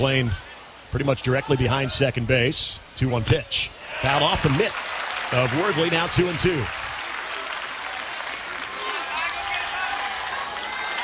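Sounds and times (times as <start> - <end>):
speech: 0.0 - 6.8
big baseball stadium crowd cheering and clapping: 3.9 - 11.0
scattered shouts from stadium crowd: 8.6 - 11.0.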